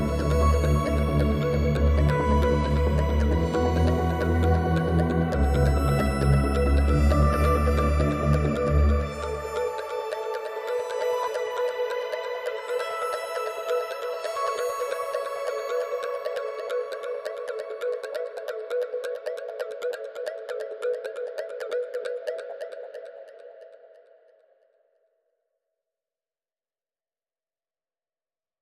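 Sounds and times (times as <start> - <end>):
ambient music mix: 0.0 - 22.9.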